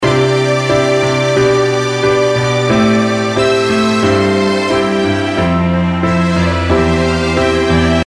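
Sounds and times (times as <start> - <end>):
strings: 0.0 - 8.0.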